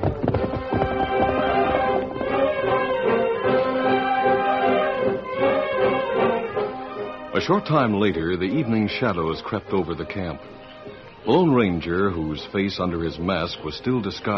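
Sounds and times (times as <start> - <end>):
horse hooves galloping: 0.0 - 3.1
orchestral music: 0.4 - 10.4
speech: 7.4 - 10.6, 11.2 - 14.3.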